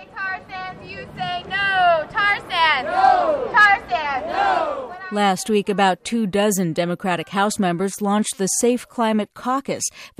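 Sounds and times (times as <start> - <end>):
protest march crowd chanting: 0.0 - 6.0
speech: 0.9 - 1.6, 5.1 - 10.1.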